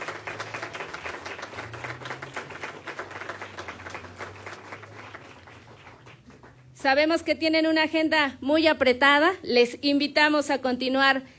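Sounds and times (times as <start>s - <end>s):
audience applause: 0.0s - 6.8s
speech: 6.8s - 11.3s.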